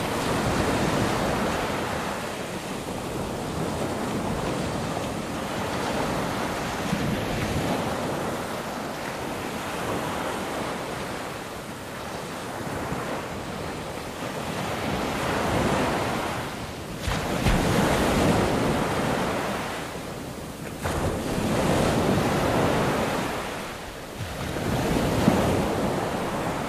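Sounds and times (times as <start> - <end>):
waves on beach: 0.0 - 26.6.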